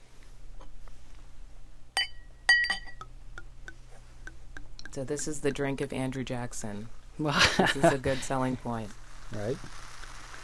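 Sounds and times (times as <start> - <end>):
steady low hum: 0.0 - 10.4
glass clinks: 2.0 - 3.1
speech: 5.0 - 9.8
champagne fizz crackling: 7.3 - 10.4.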